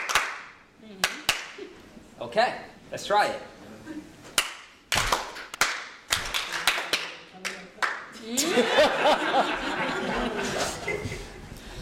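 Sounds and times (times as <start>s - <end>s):
crowd clapping in unison: 0.0s - 1.6s, 4.4s - 8.1s
speech: 2.2s - 4.0s, 8.3s - 11.0s
laughter: 8.2s - 11.5s.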